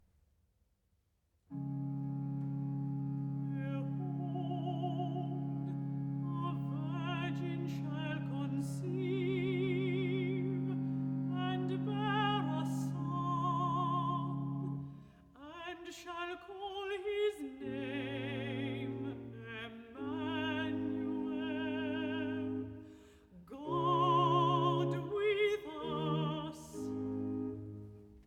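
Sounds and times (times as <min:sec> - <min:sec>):
alto singing a recitative: 0:01.5 - 0:14.8, 0:15.4 - 0:28.0.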